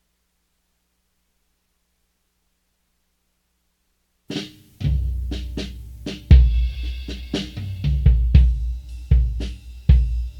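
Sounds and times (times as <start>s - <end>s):
drums: 4.2s - 10.3s.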